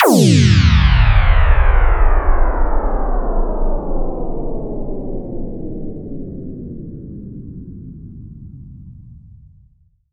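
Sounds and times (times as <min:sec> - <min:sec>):
downward sweep effect: 0:00.0 - 0:05.0.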